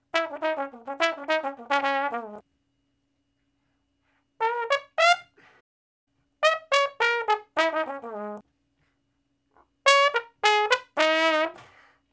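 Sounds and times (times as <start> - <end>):
slow blues trombone in D flat: 0.0 - 2.4, 4.4 - 5.5, 6.4 - 8.4, 9.8 - 11.8.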